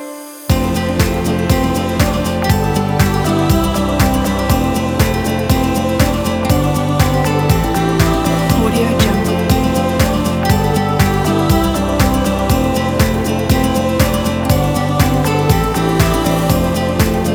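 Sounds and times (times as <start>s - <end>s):
indie folk music: 0.0s - 17.3s.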